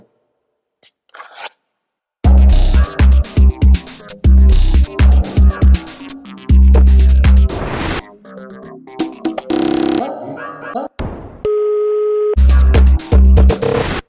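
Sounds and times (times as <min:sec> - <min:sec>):
radio jingle: 0:02.2 - 0:10.0, 0:12.3 - 0:14.0.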